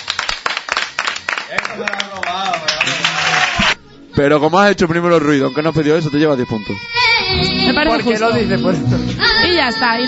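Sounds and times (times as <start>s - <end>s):
studio audience clapping: 0.0s - 3.8s
speech: 1.5s - 2.6s, 4.2s - 10.0s.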